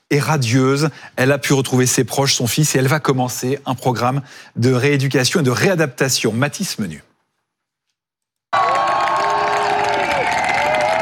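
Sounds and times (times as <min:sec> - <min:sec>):
speech: 0:00.1 - 0:07.1
applause and cheering for arriving astronaut: 0:08.5 - 0:11.0.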